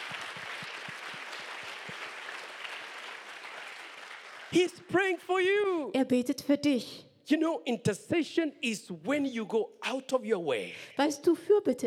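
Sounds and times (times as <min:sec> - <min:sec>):
audience clapping hands: 0:00.0 - 0:05.2
speech: 0:04.5 - 0:11.8.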